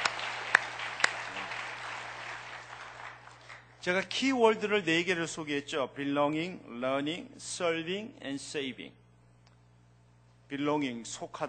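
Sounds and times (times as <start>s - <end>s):
audience applause: 0.0s - 3.8s
speech: 3.8s - 9.0s, 10.5s - 11.4s.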